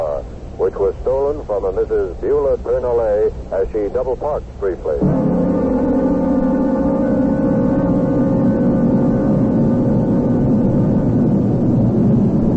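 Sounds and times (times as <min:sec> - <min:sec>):
car driving through city streets: 0:00.0 - 0:12.5
speech: 0:00.6 - 0:05.4.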